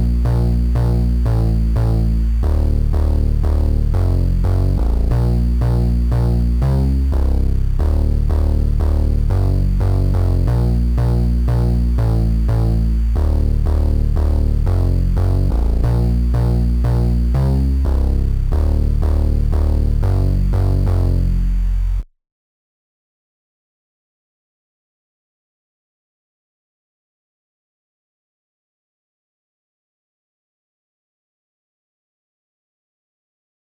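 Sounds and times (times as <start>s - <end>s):
bass: 0.0s - 22.1s.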